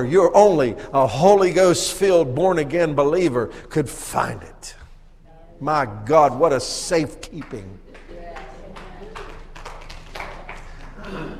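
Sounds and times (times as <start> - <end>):
speech: 0.0 - 4.8, 5.6 - 7.8
hand claps: 7.2 - 11.3.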